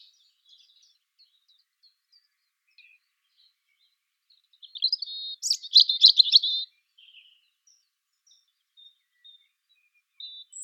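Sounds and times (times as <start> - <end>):
European robin song: 0.0 - 10.6.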